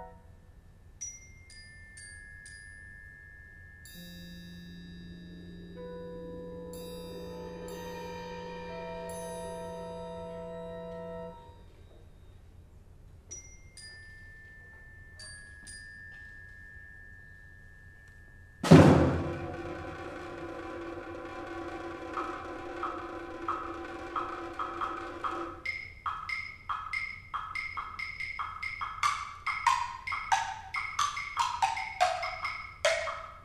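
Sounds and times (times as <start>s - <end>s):
percussion ensemble: 3.8s - 11.6s, 18.6s - 33.4s.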